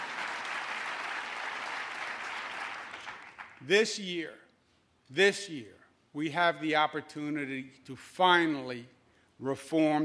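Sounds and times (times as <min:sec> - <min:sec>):
audience applause: 0:00.0 - 0:03.6
speech: 0:03.6 - 0:04.4, 0:05.1 - 0:10.0.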